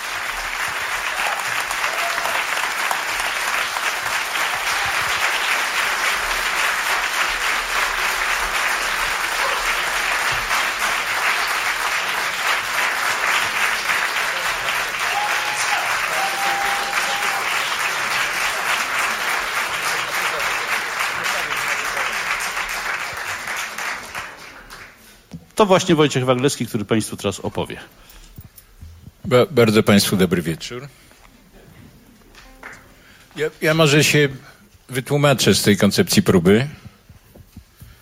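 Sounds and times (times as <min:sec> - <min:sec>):
audience applause: 0:00.0 - 0:25.2
speech: 0:25.6 - 0:28.2, 0:29.3 - 0:31.0, 0:33.4 - 0:36.8.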